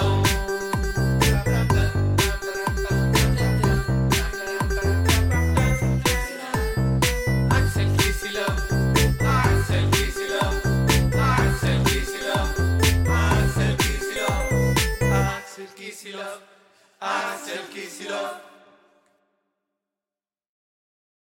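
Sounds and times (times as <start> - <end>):
jingle: 0.0 - 15.9.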